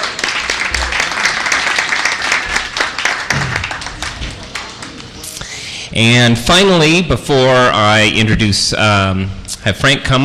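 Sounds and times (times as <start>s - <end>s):
audience round of applause: 0.0s - 5.0s
speech: 6.0s - 10.2s.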